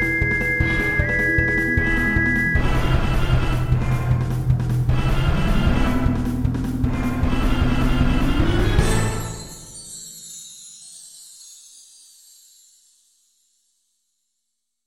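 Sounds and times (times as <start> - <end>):
boss battle game music: 0.0 - 9.5.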